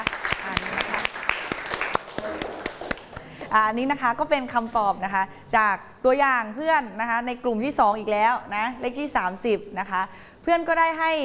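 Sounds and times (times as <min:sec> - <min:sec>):
classroom applause: 0:00.0 - 0:03.5
speech: 0:03.6 - 0:11.2.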